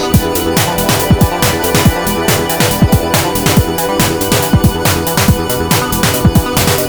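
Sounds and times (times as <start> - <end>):
snare drum: 0.2 - 6.8.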